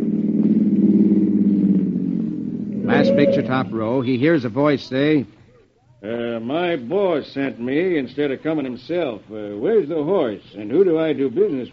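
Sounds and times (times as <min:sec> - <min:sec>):
car engine idling: 0:00.0 - 0:03.9
speech: 0:03.0 - 0:05.4, 0:06.0 - 0:11.7.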